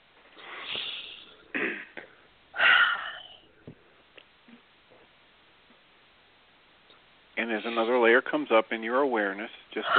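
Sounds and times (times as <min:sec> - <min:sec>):
slow deep breathing during a guided breathing exercise: 0:00.3 - 0:03.9
speech: 0:07.5 - 0:09.9.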